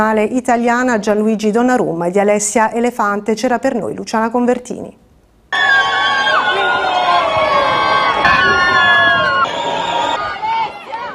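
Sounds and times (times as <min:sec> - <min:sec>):
speech: 0:00.0 - 0:05.9
excited voices and shouts: 0:05.6 - 0:11.1
wedding guests cheering and clapping: 0:05.6 - 0:11.1.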